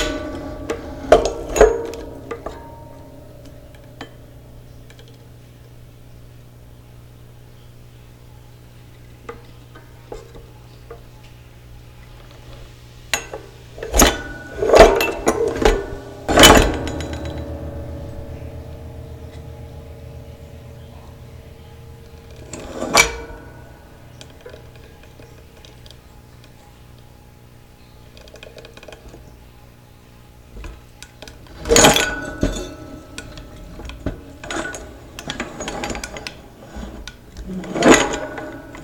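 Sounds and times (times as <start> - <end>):
zither bells: 0.0 - 5.4, 13.2 - 28.1, 30.8 - 38.8.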